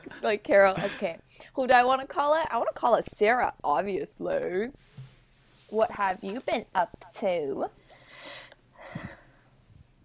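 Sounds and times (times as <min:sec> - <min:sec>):
speech: 0:00.2 - 0:05.0, 0:05.7 - 0:07.8
nervous inhale: 0:07.8 - 0:09.5.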